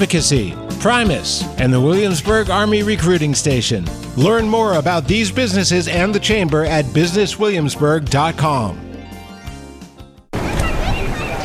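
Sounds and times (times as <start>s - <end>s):
speech: 0.0s - 8.8s
swimming pool water splashing on a summer day: 10.3s - 11.4s.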